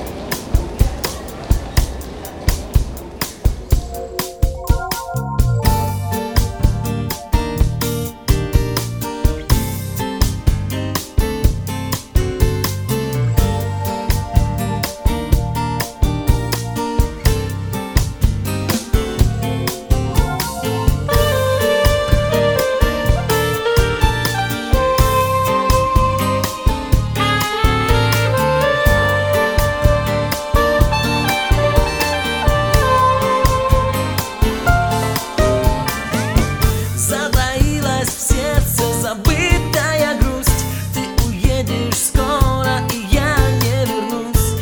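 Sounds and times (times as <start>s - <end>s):
bossa nova music: 0.3s - 44.5s.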